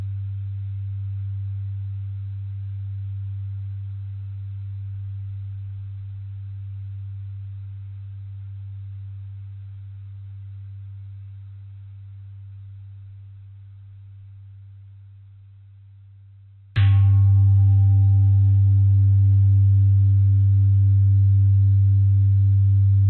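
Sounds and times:
bell: 16.8 - 22.9.

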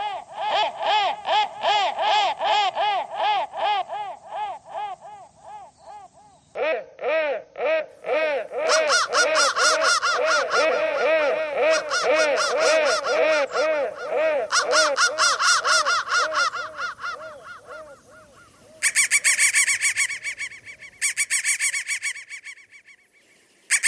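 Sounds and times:
crow giving harsh caws: 0.0 - 22.7.

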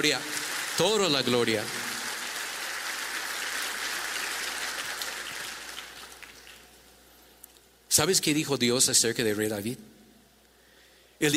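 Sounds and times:
speech: 0.0 - 1.8, 8.0 - 10.0, 11.2 - 11.3
applause: 0.0 - 6.8.

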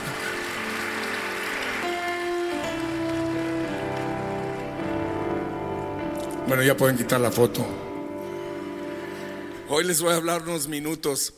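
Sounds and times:
audience applauding: 0.0 - 6.1
speech: 6.5 - 7.8, 9.7 - 11.3.

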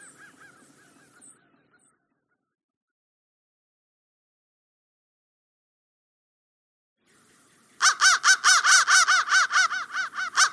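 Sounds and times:
crow cawing: 0.0 - 1.9, 7.8 - 10.5.

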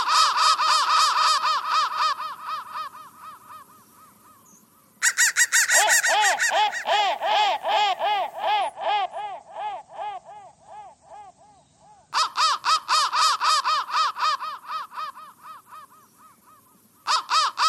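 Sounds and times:
crow cawing in raspy bursts: 0.0 - 4.2, 5.0 - 17.6.

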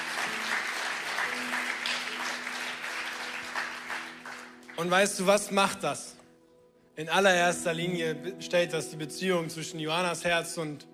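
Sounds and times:
audience applauding: 0.0 - 5.5
speech: 4.8 - 6.1, 7.0 - 10.9.

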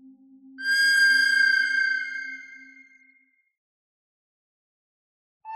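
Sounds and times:
pentatonic bird melody: 0.6 - 3.1.

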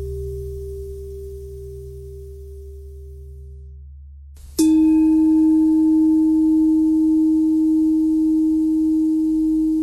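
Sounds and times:
pentatonic bell melody: 4.6 - 9.6.

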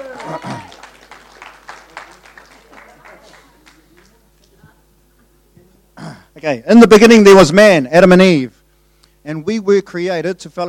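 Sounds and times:
audience applause: 0.0 - 4.3
speech: 0.3 - 0.6, 6.4 - 8.6, 9.2 - 10.6.

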